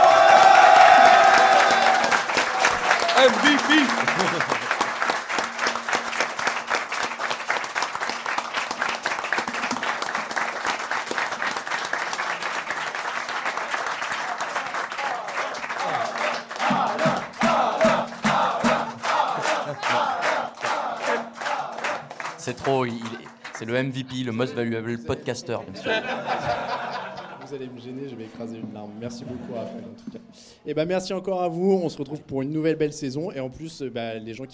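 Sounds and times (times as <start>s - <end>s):
applause: 0.0s - 24.4s
laughter: 2.7s - 5.0s, 18.8s - 21.3s, 23.9s - 28.4s, 29.0s - 30.3s
speech: 3.2s - 4.6s, 22.8s - 26.8s, 27.5s - 34.5s.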